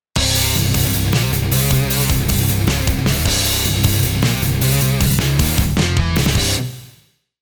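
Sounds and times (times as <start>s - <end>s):
guitar pattern: 0.2s - 7.0s.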